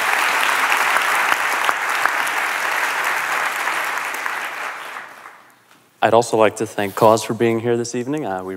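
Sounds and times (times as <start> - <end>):
round of applause: 0.0 - 5.5
speech: 6.0 - 8.5.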